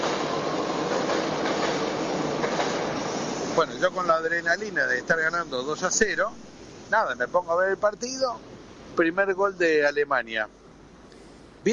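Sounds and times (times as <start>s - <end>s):
subway train passing: 0.0s - 11.1s
speech: 3.6s - 10.6s.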